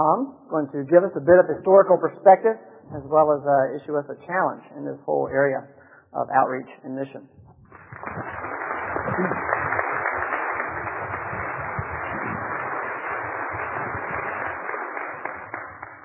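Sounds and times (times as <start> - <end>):
speech: 0.0 - 7.4, 9.0 - 9.6
audience applause: 7.7 - 16.0.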